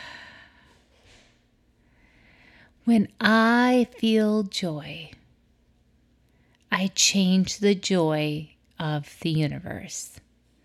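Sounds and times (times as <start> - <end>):
slow exhale during a guided deep-breathing session: 0.0 - 2.7
speech: 2.9 - 5.2, 6.8 - 10.2.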